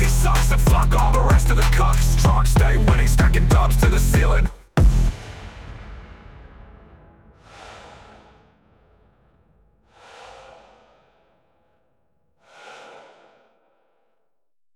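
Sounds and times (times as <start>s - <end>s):
rap music: 0.0s - 5.1s.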